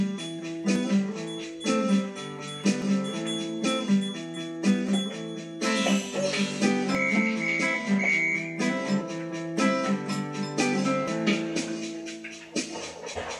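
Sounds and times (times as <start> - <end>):
guitar: 0.0 - 13.3
piano: 0.0 - 13.3.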